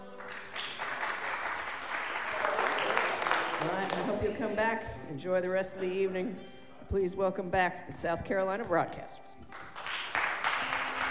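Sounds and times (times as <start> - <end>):
audience applauding at a live country music show: 0.0 - 4.6, 9.5 - 11.1
speech: 3.6 - 9.4.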